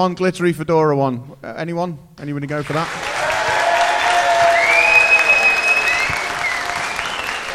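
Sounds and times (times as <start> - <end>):
speech: 0.0 - 3.0
crowd applauding: 2.7 - 7.5
people shouting: 3.2 - 5.7
sharp high whistle: 4.4 - 7.5.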